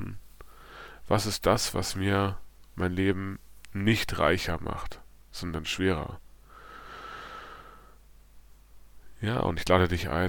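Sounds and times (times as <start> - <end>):
deep breath in and out: 0.4 - 1.1, 6.4 - 8.0
speech: 1.1 - 6.2, 9.2 - 10.2.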